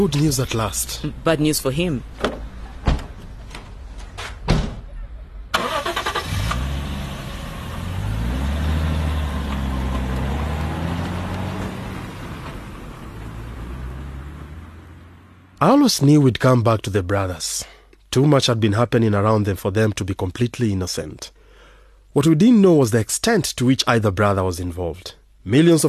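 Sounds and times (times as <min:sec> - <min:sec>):
speech: 0:00.0 - 0:02.4, 0:15.8 - 0:21.4, 0:22.1 - 0:25.8
car door thumps: 0:02.2 - 0:03.7, 0:04.4 - 0:04.8
car engine cranking, starting and driving off: 0:05.5 - 0:15.6.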